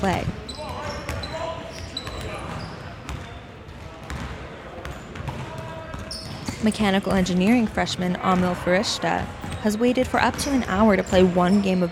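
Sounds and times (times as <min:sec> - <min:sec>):
speech: 0:00.0 - 0:00.4, 0:06.6 - 0:11.9
basketballs bouncing on the wood floor of a campus basketball court: 0:00.0 - 0:11.9
crowd noise and talking: 0:00.0 - 0:11.9
sneakers squeaking on wood floor: 0:00.0 - 0:11.9.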